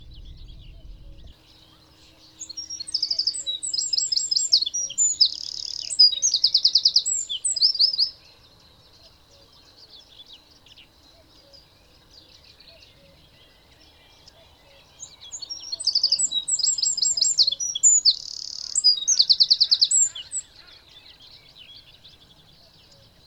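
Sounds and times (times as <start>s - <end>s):
low rumbling noise: 0.0s - 2.8s
Eurasian wren song: 0.0s - 23.2s.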